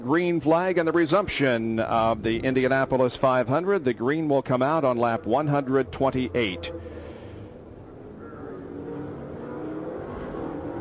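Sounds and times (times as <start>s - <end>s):
speech: 0.0s - 7.0s
race cars accelerating: 4.6s - 10.7s.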